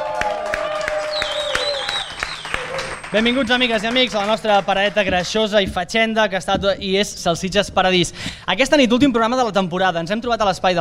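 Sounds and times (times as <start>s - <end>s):
crowd cheering: 0.0s - 5.5s
live audience rhythmic clapping at the Ateneu de Sabadell: 0.0s - 8.4s
speech: 3.1s - 10.7s.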